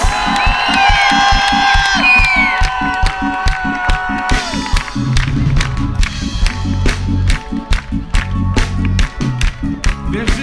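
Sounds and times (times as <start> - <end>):
loud crowd cheering and whooping: 0.0 - 6.3
steady clapping: 0.0 - 10.4
thumping music with a heavy beat: 0.0 - 10.4
shrill whistles: 0.4 - 2.7.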